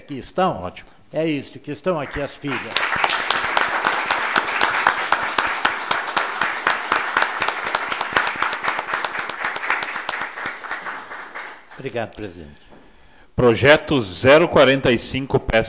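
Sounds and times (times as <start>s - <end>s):
speech: 0.1s - 3.1s, 11.8s - 12.8s, 13.4s - 15.6s
round of applause: 2.1s - 11.9s.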